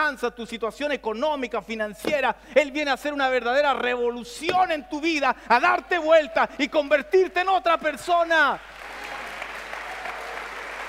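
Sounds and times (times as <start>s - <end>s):
speech: 0.1s - 8.9s
audience applauding loudly: 8.6s - 10.8s.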